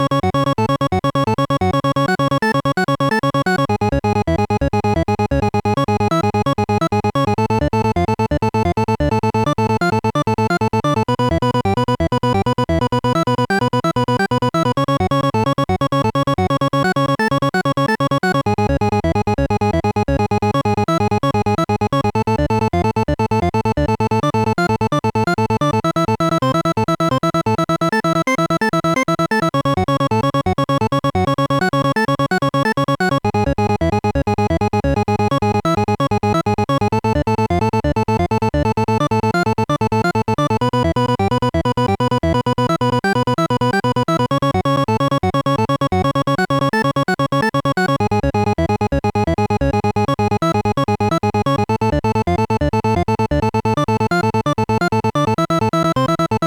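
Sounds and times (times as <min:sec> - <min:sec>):
chiptune danger music: 0:00.0 - 0:56.4.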